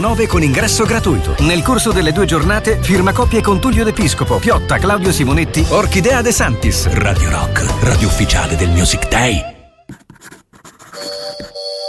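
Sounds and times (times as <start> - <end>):
speech: 0.0 - 9.5
pencil drawing on paper: 9.9 - 11.8.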